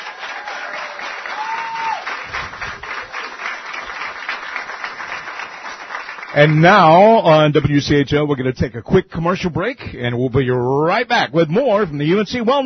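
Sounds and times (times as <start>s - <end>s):
audience applause: 0.0s - 7.0s
speech: 6.3s - 12.6s.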